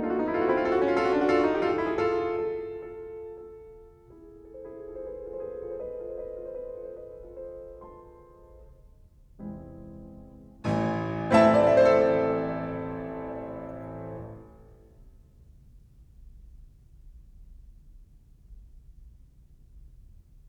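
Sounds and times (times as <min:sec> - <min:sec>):
piano prelude in A minor: 0:00.0 - 0:15.0.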